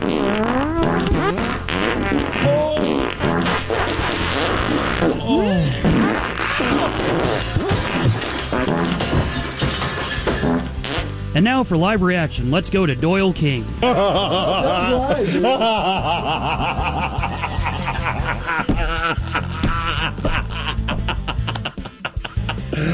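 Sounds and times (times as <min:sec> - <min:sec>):
montage of fart sounds: 0:00.0 - 0:11.2
laughter: 0:05.2 - 0:07.7, 0:13.8 - 0:22.9
speech: 0:11.4 - 0:17.2.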